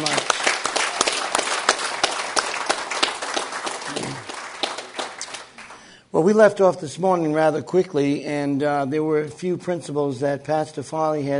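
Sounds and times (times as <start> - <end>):
audience applause: 0.0 - 5.9
speech: 6.2 - 11.3.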